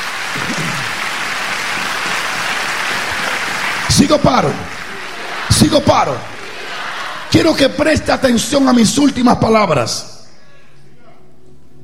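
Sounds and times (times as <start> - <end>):
audience applause: 0.0 - 8.8
speech: 4.0 - 4.8, 5.6 - 6.4, 7.3 - 10.1.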